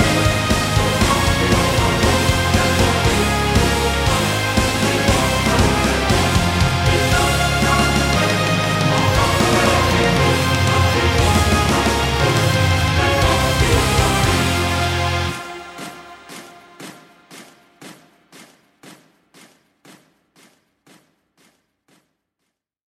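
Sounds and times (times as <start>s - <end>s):
Ukrainian Army military march music: 0.0s - 18.1s.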